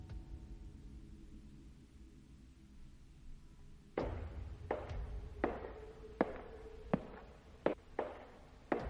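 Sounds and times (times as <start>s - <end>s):
approaching footsteps: 4.0s - 8.8s.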